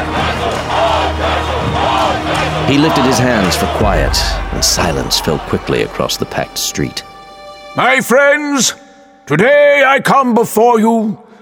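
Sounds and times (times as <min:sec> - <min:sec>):
crowd shouting in a packed street: 0:00.0 - 0:06.6
speech: 0:02.7 - 0:07.1, 0:07.7 - 0:11.2.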